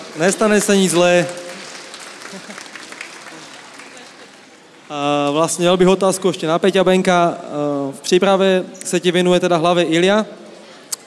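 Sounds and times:
audience applause: 0.0 - 5.4
speech: 0.2 - 1.4, 2.3 - 2.7, 4.9 - 10.4.

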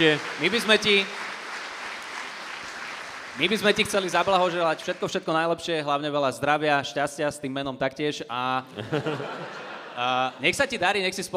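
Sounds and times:
speech: 0.0 - 1.2, 3.4 - 11.3
live crowd applauding: 0.0 - 5.5
laughter: 8.6 - 10.8.

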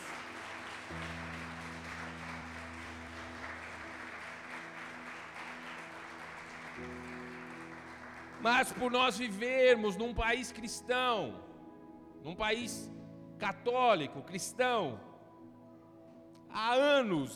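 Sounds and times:
audience applause: 0.0 - 9.3
speech: 8.4 - 11.5, 12.2 - 15.1, 16.5 - 17.3.

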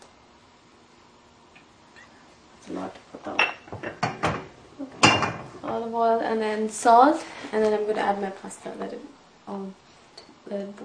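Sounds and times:
speech: 2.7 - 3.6, 5.7 - 9.8, 10.5 - 10.8
metal pot clanking as it is set down on a stove: 3.3 - 5.8.

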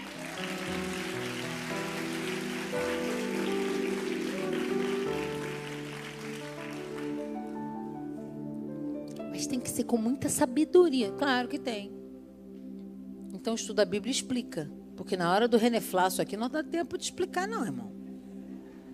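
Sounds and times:
audience applause: 0.0 - 7.6
sustained musical tones: 0.0 - 8.6
speech: 9.4 - 12.0, 13.4 - 18.0.

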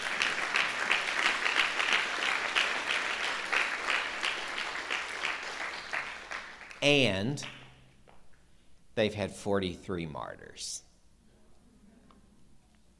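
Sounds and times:
audience applause: 0.0 - 6.8
speech: 6.8 - 7.6, 9.0 - 10.9.

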